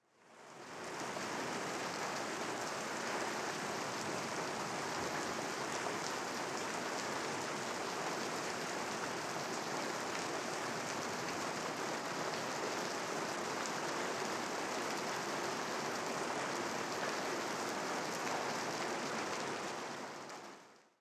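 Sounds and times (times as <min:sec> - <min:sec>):
heavy rain on foliage: 0:00.2 - 0:21.0.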